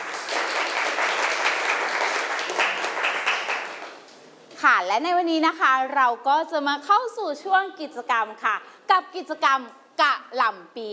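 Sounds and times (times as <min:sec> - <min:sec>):
classroom applause: 0:00.0 - 0:04.1
speech: 0:04.8 - 0:10.9.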